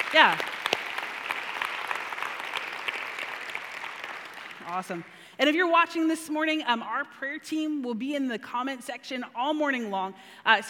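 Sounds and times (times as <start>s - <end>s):
church audience round of applause: 0.0s - 4.8s
speech: 0.1s - 0.5s, 4.7s - 10.6s.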